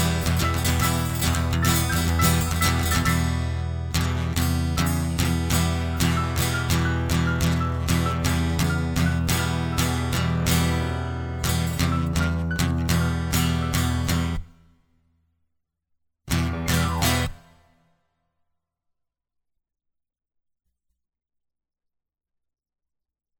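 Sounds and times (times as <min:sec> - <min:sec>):
instrumental music: 0:00.0 - 0:14.5, 0:16.3 - 0:17.5.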